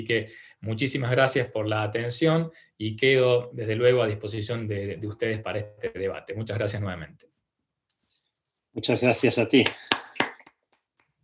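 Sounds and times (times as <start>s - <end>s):
speech: 0.0s - 7.3s, 8.8s - 10.0s
lone person clapping at the close of an online talk: 9.6s - 11.2s.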